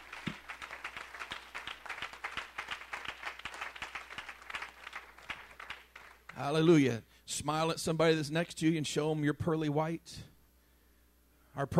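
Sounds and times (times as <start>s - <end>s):
audience clapping hands: 0.0s - 6.7s
speech: 6.4s - 10.3s, 11.6s - 11.7s.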